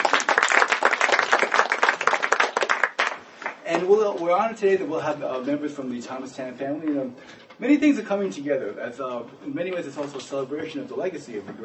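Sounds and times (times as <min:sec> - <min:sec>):
audience applause: 0:00.0 - 0:03.6
speech: 0:03.7 - 0:11.6.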